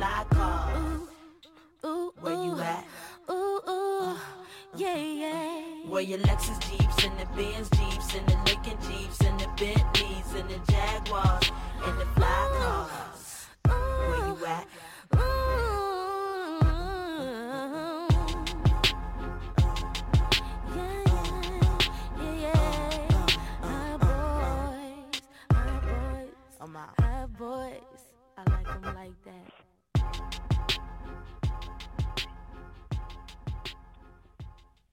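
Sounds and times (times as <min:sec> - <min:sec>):
hip-hop song playing: 0:00.0 - 0:27.8, 0:28.4 - 0:34.6
speech: 0:06.0 - 0:13.2.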